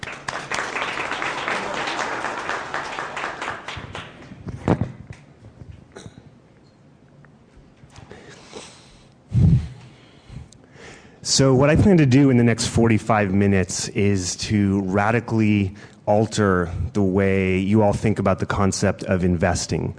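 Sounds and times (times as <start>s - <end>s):
audience applause welcoming a speaker: 0.0s - 4.4s
speech: 11.3s - 19.9s.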